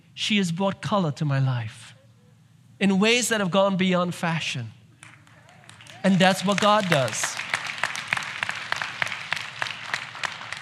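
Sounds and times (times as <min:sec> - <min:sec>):
speech: 0:00.2 - 0:02.0, 0:02.8 - 0:04.8, 0:06.0 - 0:07.4
audience clapping: 0:05.0 - 0:10.6.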